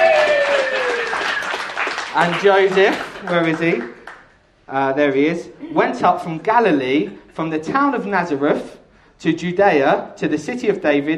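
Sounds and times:
audience clapping: 0.0 - 4.4
speech: 2.2 - 4.0, 4.7 - 11.1.

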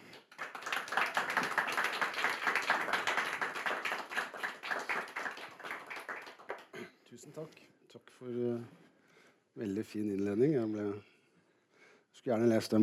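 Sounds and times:
audience applause: 0.0 - 6.7
speech: 8.2 - 8.8, 9.6 - 11.1, 12.2 - 12.8.

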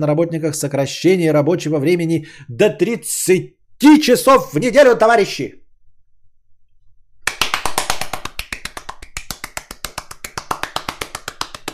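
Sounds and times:
speech: 0.0 - 5.6
applause: 7.3 - 11.7.

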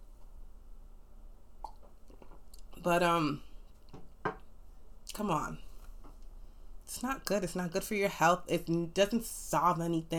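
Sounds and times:
low hum: 0.0 - 10.1
speech: 2.8 - 3.5, 5.2 - 5.7, 6.9 - 10.1.

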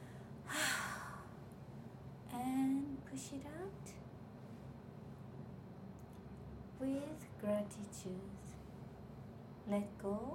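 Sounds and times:
strong exhale during a guided breathing meditation: 0.0 - 1.3
low steady hum: 0.0 - 10.3
speech: 3.1 - 4.1, 6.8 - 8.6, 9.7 - 10.3.

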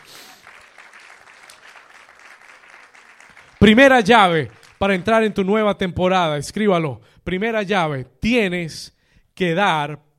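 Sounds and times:
audience applause: 0.0 - 5.6
speech: 3.6 - 10.0.

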